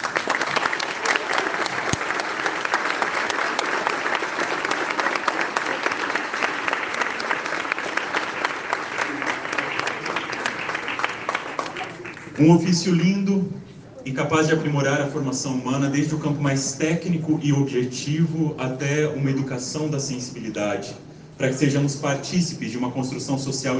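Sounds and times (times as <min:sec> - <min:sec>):
audience applause: 0:00.0 - 0:12.6
speech: 0:12.4 - 0:23.7.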